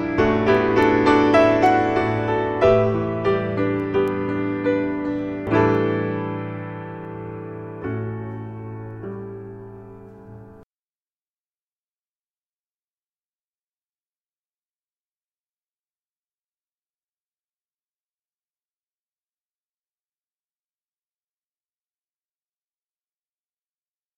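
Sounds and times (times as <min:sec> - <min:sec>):
instrumental hymn: 0:00.0 - 0:10.6.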